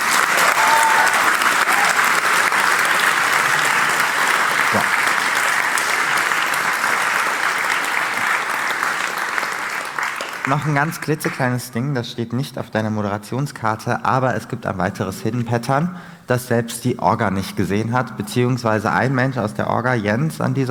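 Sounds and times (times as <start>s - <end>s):
large crowd applause: 0.0s - 11.5s
speech: 10.5s - 20.7s.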